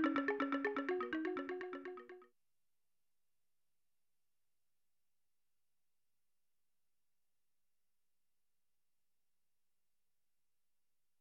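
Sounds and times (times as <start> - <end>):
African xylophone music: 0.0 - 2.2.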